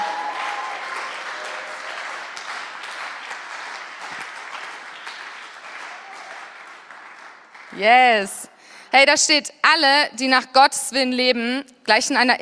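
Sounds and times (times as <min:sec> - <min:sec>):
audience applause: 0:00.0 - 0:07.8
speech: 0:07.8 - 0:12.4.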